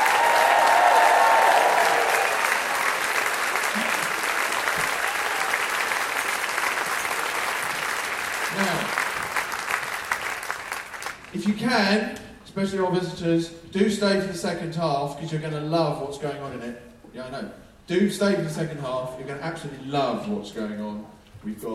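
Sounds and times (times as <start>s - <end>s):
audience applause and cheering: 0.0s - 11.4s
speech: 11.6s - 21.7s.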